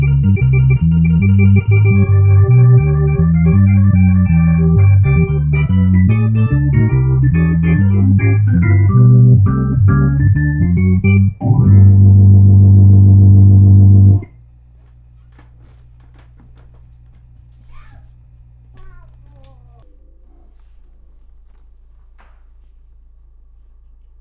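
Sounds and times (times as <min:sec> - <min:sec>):
Hammond C-3 organ: 0:00.0 - 0:14.3.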